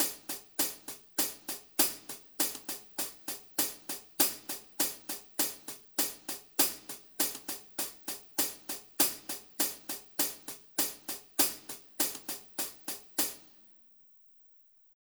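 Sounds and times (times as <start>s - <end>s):
Wave Drum hi-hat: 0.0s - 13.6s.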